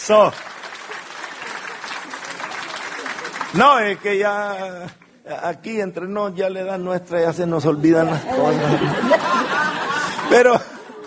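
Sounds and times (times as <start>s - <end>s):
speech: 0.0s - 0.5s, 3.5s - 9.6s, 10.3s - 10.6s
audience applause: 0.0s - 4.7s, 8.8s - 11.0s
laughter: 8.0s - 11.0s.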